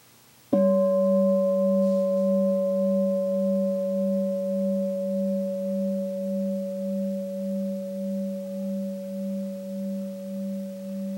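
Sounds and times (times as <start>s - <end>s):
gong ringing: 0.6s - 11.0s.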